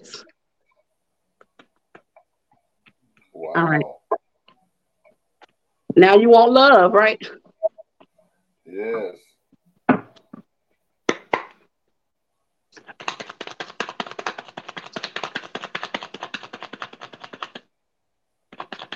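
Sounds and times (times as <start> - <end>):
speech: 3.6 - 4.0, 6.0 - 7.4, 8.8 - 9.3
deck of tarot cards being shuffled: 12.8 - 17.6.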